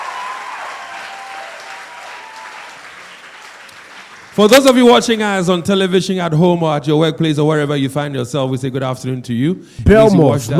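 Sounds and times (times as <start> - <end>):
audience applause and crowd noise at a televised event: 0.0 - 5.1
speech: 4.4 - 10.5.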